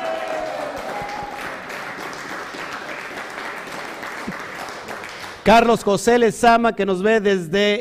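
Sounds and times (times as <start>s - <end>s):
audience applause: 0.0s - 5.5s
speech: 5.5s - 7.7s.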